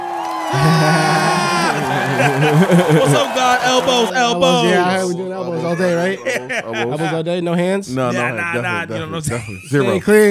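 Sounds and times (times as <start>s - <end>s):
applause sound effect: 0.0s - 4.6s
cheering sound effect: 0.0s - 5.1s
laughter: 0.5s - 7.5s, 8.1s - 10.2s
speech: 2.5s - 10.2s.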